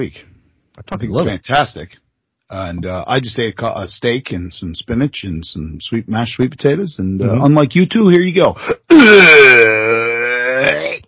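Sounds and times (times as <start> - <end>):
speech: 0.0 - 9.9
burp: 8.8 - 11.0.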